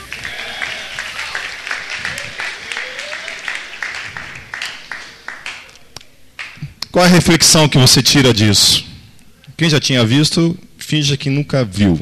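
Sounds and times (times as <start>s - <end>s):
applause from a church audience: 0.0s - 5.8s
speech: 7.0s - 8.9s, 9.6s - 11.9s.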